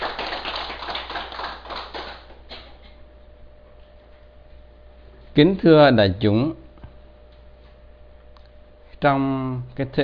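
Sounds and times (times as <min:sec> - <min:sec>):
audience applause: 0:00.0 - 0:02.4
speech: 0:05.4 - 0:06.6, 0:09.0 - 0:10.0.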